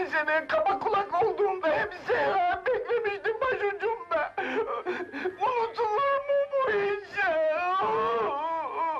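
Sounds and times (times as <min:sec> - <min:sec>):
people overcome with emotion sobbing: 0:00.0 - 0:08.9
speech: 0:00.2 - 0:00.7.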